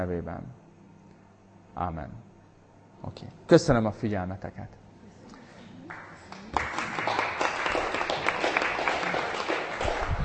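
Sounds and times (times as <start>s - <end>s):
speech: 0.0s - 0.6s, 1.8s - 2.3s, 3.0s - 4.8s
audience applause: 5.9s - 10.2s.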